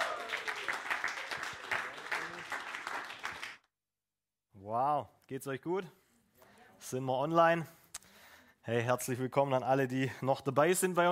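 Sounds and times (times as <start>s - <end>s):
audience applause: 0.0s - 3.6s
speech: 4.7s - 6.0s, 6.8s - 7.8s, 8.7s - 11.1s.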